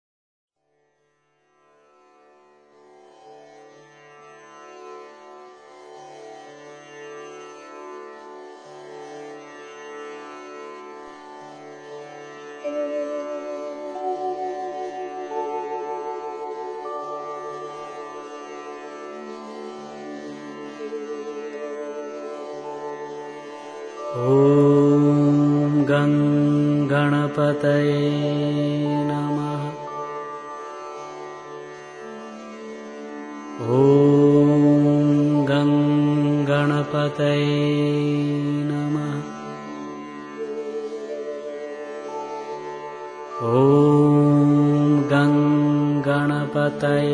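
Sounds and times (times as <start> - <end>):
mantra chanting: 12.6 - 18.3, 23.9 - 30.4, 33.6 - 39.9, 43.3 - 47.1.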